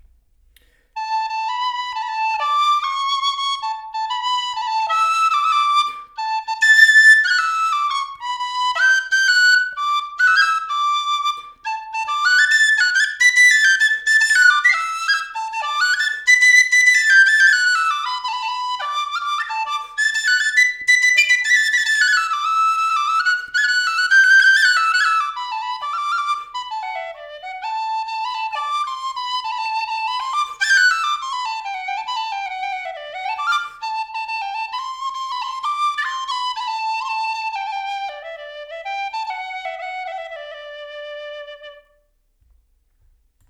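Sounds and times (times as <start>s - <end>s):
flute: 0.0s - 42.2s.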